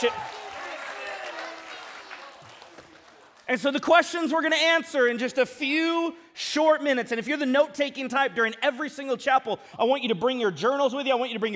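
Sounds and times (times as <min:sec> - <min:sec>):
speech: 0:00.0 - 0:00.2, 0:03.5 - 0:11.5
crowd applauding: 0:00.0 - 0:03.6.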